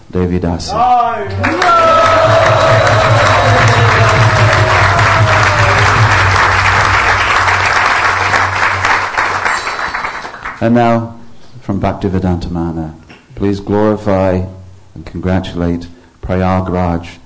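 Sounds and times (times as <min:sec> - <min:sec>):
speech: 0:00.1 - 0:03.7, 0:10.6 - 0:17.2
audience applause congratulating initiates at a ceremony: 0:01.2 - 0:10.6.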